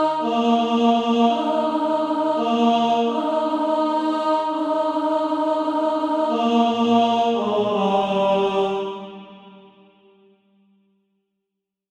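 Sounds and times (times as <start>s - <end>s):
tenor singing: 0.0s - 9.4s.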